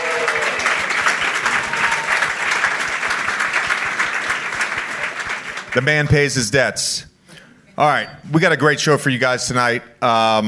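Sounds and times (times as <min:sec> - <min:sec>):
studio audience applause at a live show: 0:00.0 - 0:06.2
speech: 0:05.8 - 0:07.1, 0:07.8 - 0:10.4.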